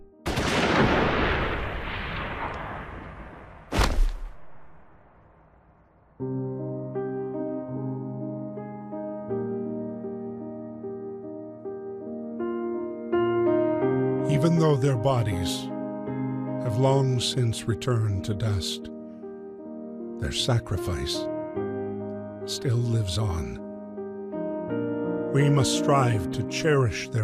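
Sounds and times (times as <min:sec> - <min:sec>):
firing squad gunfire volley: 0:00.2 - 0:05.0
single gunshot: 0:00.3 - 0:05.0
sustained music: 0:06.2 - 0:27.2
speech: 0:14.4 - 0:15.7, 0:16.6 - 0:18.9, 0:20.2 - 0:21.3, 0:22.5 - 0:23.6, 0:25.3 - 0:27.2.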